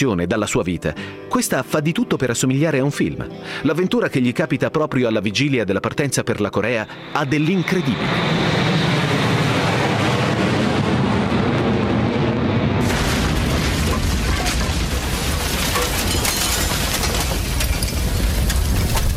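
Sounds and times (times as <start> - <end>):
speech: 0.0 - 8.6
Douglas military airplane crashing and exploding: 9.0 - 19.1.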